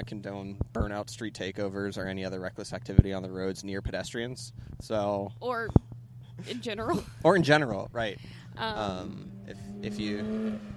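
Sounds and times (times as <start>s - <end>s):
speech: 0.0s - 10.7s
black Porsche GT3 Touring sports car driving by at a cars and coffee meet: 5.9s - 10.7s.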